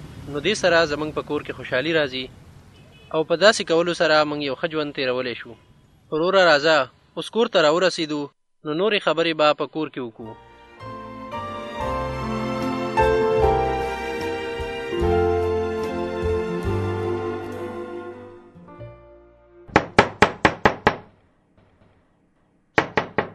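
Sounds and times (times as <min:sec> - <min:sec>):
speech: 0:00.3 - 0:02.4, 0:03.1 - 0:10.9
music: 0:10.2 - 0:19.8
knocking on a house door: 0:19.7 - 0:21.2, 0:22.8 - 0:23.3.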